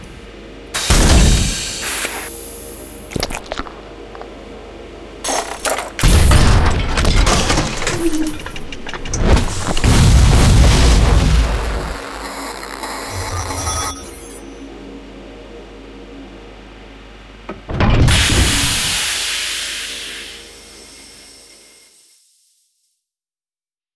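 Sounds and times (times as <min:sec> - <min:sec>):
hybrid exosuit exoskeleton mechanical sounds: 0:00.8 - 0:04.4, 0:05.2 - 0:14.6, 0:17.5 - 0:19.2.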